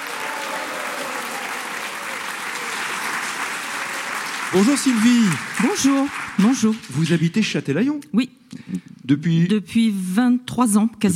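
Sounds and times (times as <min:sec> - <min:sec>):
studio audience applause welcoming game show contestants: 0:00.0 - 0:07.6
speech: 0:04.5 - 0:11.1.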